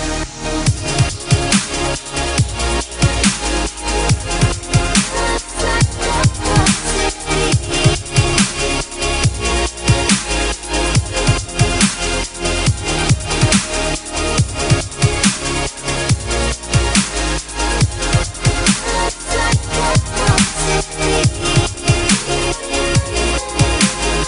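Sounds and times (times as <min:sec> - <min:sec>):
trance beat: 0:00.0 - 0:24.2
female vocals: 0:04.2 - 0:08.4, 0:18.2 - 0:24.2.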